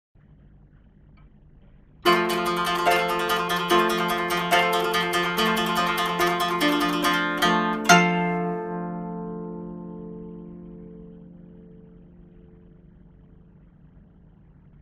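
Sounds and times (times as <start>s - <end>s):
koto: 2.0s - 13.0s.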